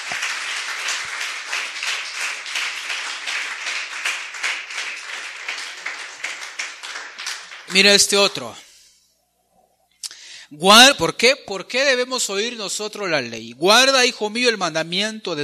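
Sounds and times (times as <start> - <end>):
church congregation applause for the Lord: 0.0 - 8.5
speech: 7.7 - 8.6, 10.5 - 15.4.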